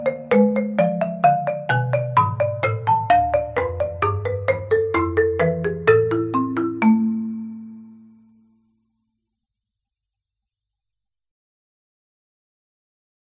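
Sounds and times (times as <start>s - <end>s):
keyboard invention played on mallets: 0.0s - 8.5s.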